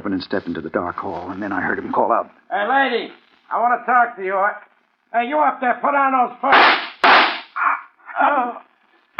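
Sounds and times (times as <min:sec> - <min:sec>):
speech: 0:00.1 - 0:06.9
gunshot: 0:06.5 - 0:07.5.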